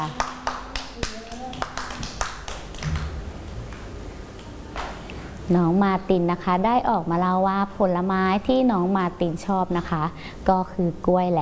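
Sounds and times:
speech: 0.0s - 0.2s, 5.5s - 11.4s
children clapping: 0.0s - 3.8s.

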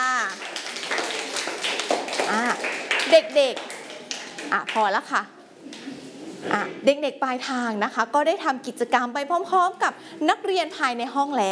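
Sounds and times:
children clapping: 0.0s - 4.9s
speech: 3.1s - 3.7s, 4.4s - 5.8s, 6.4s - 11.5s.

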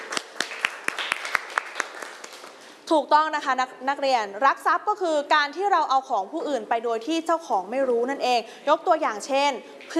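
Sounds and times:
students clapping for themselves in class: 0.0s - 2.6s
speech: 2.9s - 9.9s.

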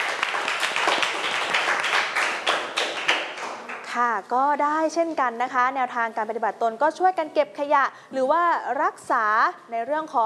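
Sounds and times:
classroom students clapping hands: 0.0s - 3.9s
speech: 4.0s - 10.2s.

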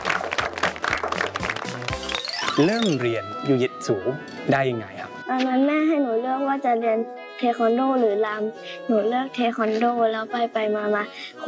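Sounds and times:
applause for young martial arts students: 0.0s - 3.1s
speech: 2.6s - 11.4s.

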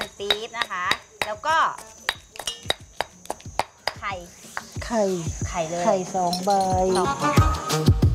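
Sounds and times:
pounding curry paste in a mortar: 0.0s - 4.0s
speech: 0.2s - 2.0s, 4.0s - 8.0s.

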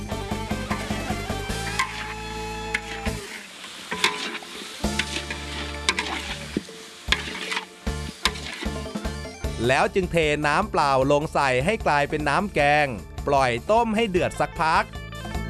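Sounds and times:
duck stir-frying in curry paste: 0.4s - 9.4s
speech: 9.6s - 15.0s.

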